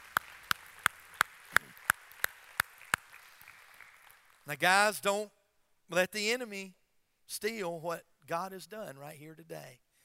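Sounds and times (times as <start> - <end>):
audience hand clapping: 0.0 - 4.7
speech: 4.5 - 9.9.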